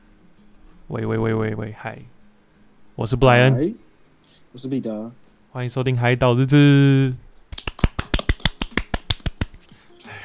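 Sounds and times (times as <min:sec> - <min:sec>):
speech: 0:00.9 - 0:02.2, 0:03.0 - 0:07.2
hands clapping: 0:07.5 - 0:09.7.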